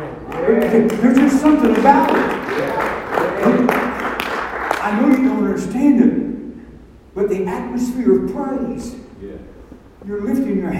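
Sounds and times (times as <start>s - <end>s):
audience clapping hands: 0.0s - 5.5s
speech: 0.4s - 3.8s, 4.8s - 6.2s, 7.2s - 10.7s.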